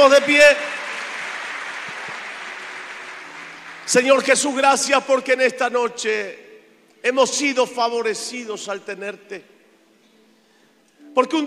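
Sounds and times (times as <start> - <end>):
speech: 0.0 - 0.8, 3.9 - 9.6, 11.2 - 11.4
audience applause: 0.0 - 4.4.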